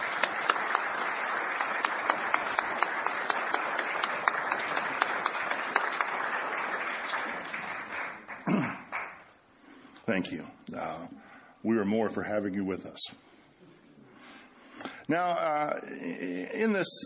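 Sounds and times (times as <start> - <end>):
crowd applauding: 0.0 - 9.3
speech: 10.2 - 13.3, 15.1 - 17.0.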